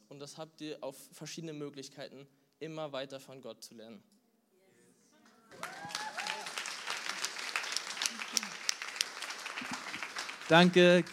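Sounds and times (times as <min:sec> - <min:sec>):
speech: 0:00.2 - 0:04.2, 0:10.5 - 0:11.1
audience applause: 0:05.5 - 0:11.1.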